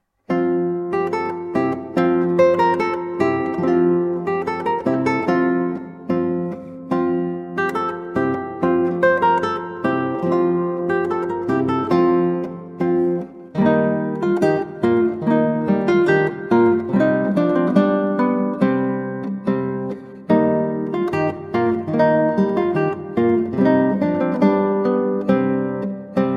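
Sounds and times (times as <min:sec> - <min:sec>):
8-string guitar: 0:00.0 - 0:26.3.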